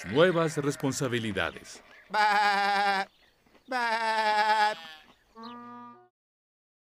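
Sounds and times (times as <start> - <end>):
sheep bleating: 0.0 - 3.1, 3.7 - 6.1
speech: 0.0 - 5.8.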